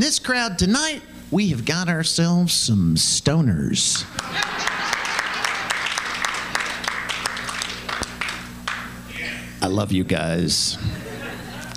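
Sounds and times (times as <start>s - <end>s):
speech: 0.0s - 5.0s, 9.6s - 11.1s
pub audience clapping: 4.0s - 9.0s
laughter: 4.1s - 7.0s, 10.6s - 11.7s.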